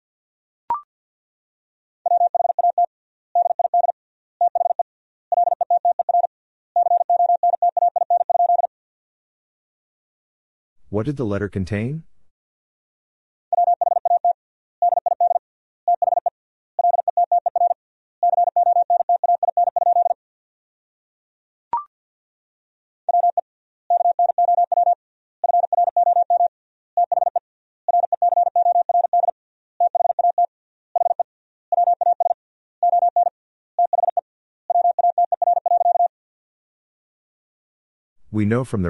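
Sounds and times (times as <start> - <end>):
Morse code tones at 50 words per minute: 2.1 - 8.7, 13.5 - 20.2, 23.1 - 36.1
speech: 10.9 - 12.1, 38.4 - 38.8.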